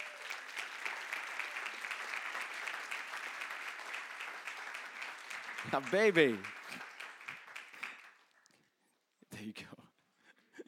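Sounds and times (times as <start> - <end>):
audience applause: 0.0 - 8.4
speech: 5.6 - 6.6.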